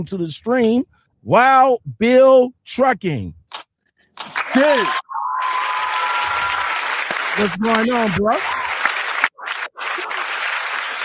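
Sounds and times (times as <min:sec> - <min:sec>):
speech: 0:00.0 - 0:03.4, 0:04.2 - 0:05.0, 0:07.4 - 0:08.6
applause: 0:04.2 - 0:11.0.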